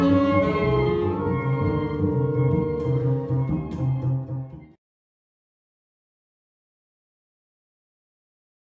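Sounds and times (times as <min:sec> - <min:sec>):
saxophone playing: 0:00.0 - 0:04.6.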